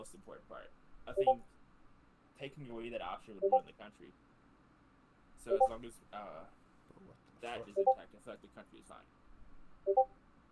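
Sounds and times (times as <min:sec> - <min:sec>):
speech: 0:00.0 - 0:01.6, 0:02.4 - 0:04.3, 0:05.4 - 0:09.2, 0:09.8 - 0:10.2
Discord notification sounds: 0:01.2 - 0:01.4, 0:03.4 - 0:03.6, 0:05.5 - 0:05.8, 0:07.7 - 0:08.0, 0:09.9 - 0:10.1.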